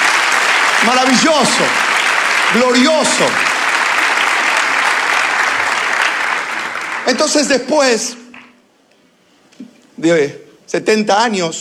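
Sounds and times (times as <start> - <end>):
audience applause: 0.0 - 8.5
speech: 0.8 - 1.9, 2.5 - 3.5, 7.1 - 8.2, 10.0 - 11.5.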